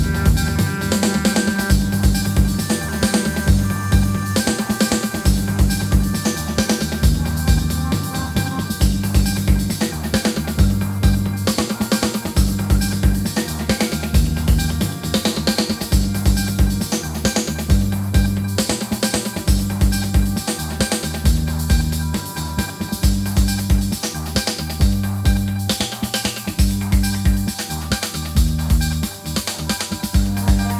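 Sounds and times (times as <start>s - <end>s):
rock funk music: 0.0s - 30.7s.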